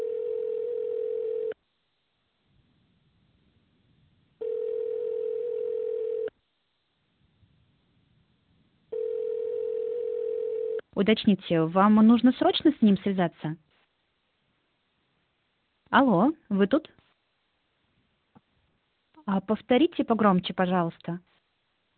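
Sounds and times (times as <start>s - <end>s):
telephone ringback tone, call unanswered: 0.0s - 1.6s, 4.4s - 6.3s, 8.9s - 10.8s
speech: 11.0s - 13.7s, 15.9s - 17.0s, 19.3s - 21.3s.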